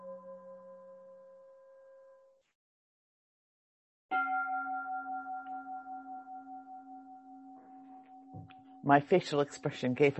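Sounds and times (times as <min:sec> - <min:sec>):
second bell with a brighter higher pitch ringing: 0:04.1 - 0:08.9
speech: 0:08.8 - 0:10.1.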